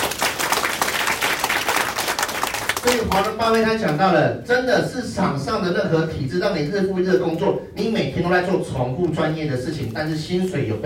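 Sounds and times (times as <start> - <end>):
audience applause: 0.0 - 3.0
speech: 2.8 - 10.8.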